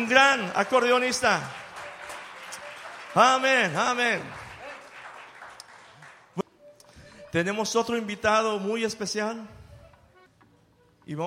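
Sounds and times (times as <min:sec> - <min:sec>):
speech: 0:00.0 - 0:01.6, 0:03.1 - 0:04.4, 0:07.3 - 0:09.6, 0:11.1 - 0:11.2
loud applause: 0:00.0 - 0:06.4.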